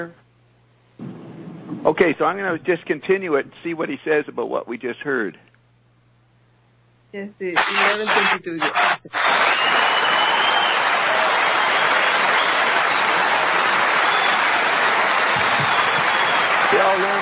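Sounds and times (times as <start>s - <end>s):
speech: 0.0s - 0.2s, 1.8s - 5.5s, 7.1s - 9.4s, 16.8s - 17.2s
audience clapping: 7.6s - 17.2s.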